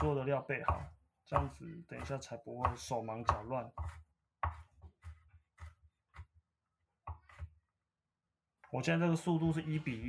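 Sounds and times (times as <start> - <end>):
speech: 0.0 - 4.6, 8.7 - 10.0
knife chopping garlic: 0.0 - 7.7.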